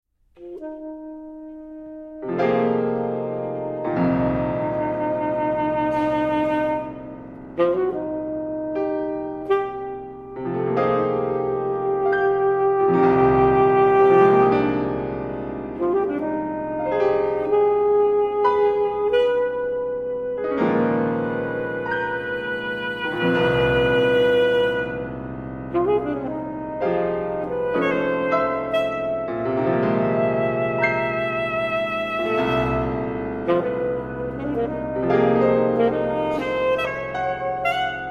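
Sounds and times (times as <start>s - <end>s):
saxophone: 0.4s - 38.1s.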